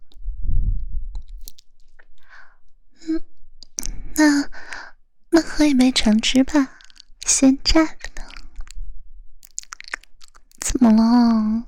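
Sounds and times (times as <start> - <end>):
wet mouth clicks: 1.2 - 2.1, 3.6 - 4.0, 6.5 - 8.8, 9.4 - 10.8
speech: 4.2 - 4.6, 5.4 - 8.1, 10.8 - 11.6
chewing a bite of a sandwich with bacon and cheese: 6.5 - 7.4, 8.0 - 8.8, 9.4 - 10.8.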